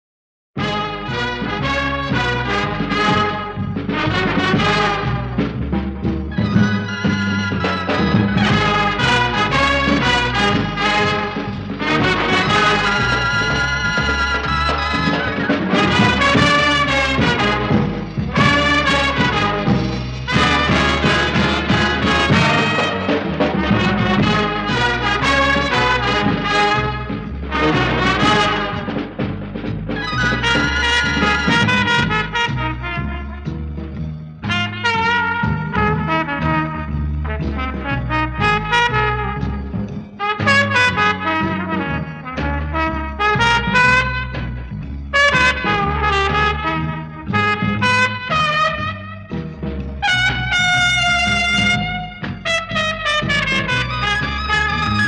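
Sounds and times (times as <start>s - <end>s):
title theme music: 0.6s - 55.0s.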